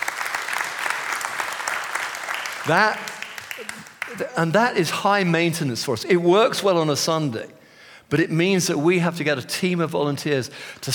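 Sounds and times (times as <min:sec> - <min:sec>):
audience clapping: 0:00.0 - 0:05.3
speech: 0:02.6 - 0:03.1, 0:03.7 - 0:10.9.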